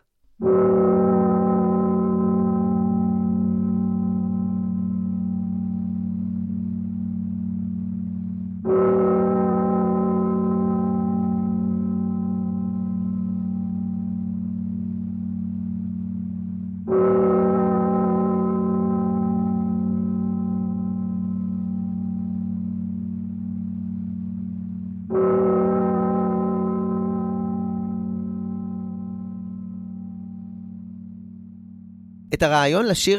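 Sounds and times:
slowed-down church bells tolling: 0:00.0 - 0:32.3
speech: 0:32.4 - 0:33.1.

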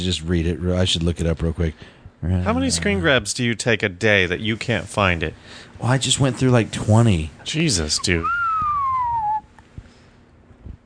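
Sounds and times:
speech: 0:00.0 - 0:08.4
person whistling a downward sliding note: 0:08.2 - 0:09.5.

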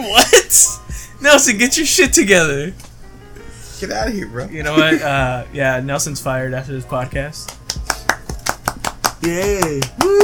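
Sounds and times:
speech: 0:00.0 - 0:02.9, 0:03.8 - 0:07.6, 0:09.2 - 0:10.2
hand claps: 0:07.4 - 0:10.2
people whooping and cheering: 0:09.7 - 0:10.2.

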